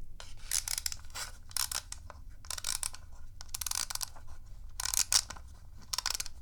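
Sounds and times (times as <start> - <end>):
toy boat's clockwork motor being wound: 0.5 - 4.1, 4.8 - 5.3, 5.9 - 6.4.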